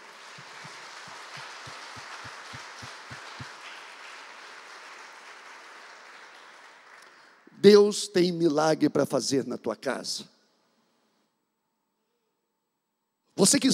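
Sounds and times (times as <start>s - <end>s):
audience applauding loudly: 0.0s - 7.6s
speech: 7.6s - 10.3s, 13.4s - 13.7s.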